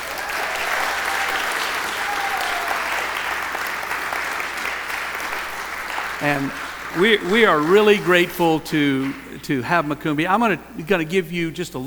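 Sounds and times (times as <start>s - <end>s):
audience applause: 0.0s - 8.6s
speech: 6.2s - 11.8s.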